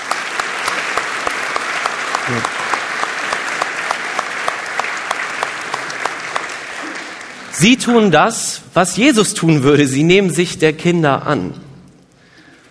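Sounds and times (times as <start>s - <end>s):
audience applause: 0.0s - 8.0s
speech: 2.3s - 2.6s, 7.6s - 11.6s.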